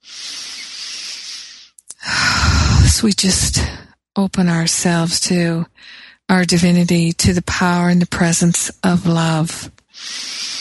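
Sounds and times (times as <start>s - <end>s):
deep breath taken during guided meditation: 0.0s - 2.8s, 9.9s - 10.5s
speech: 3.0s - 10.3s.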